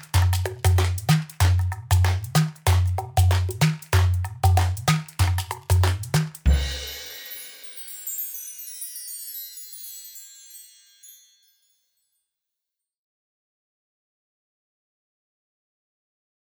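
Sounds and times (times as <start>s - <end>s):
world percussion: 0.0s - 11.8s.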